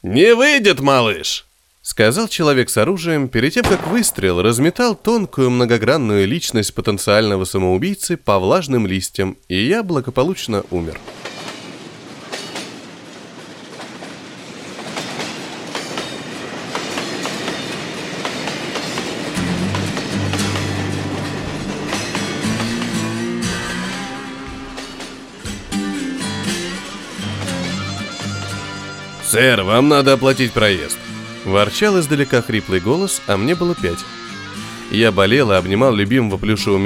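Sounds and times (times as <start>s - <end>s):
speech: 0.0s - 11.4s, 29.4s - 34.2s, 34.9s - 36.8s
suburban train running on rails: 10.8s - 28.6s
train wheels clickety-clack: 11.0s - 25.7s.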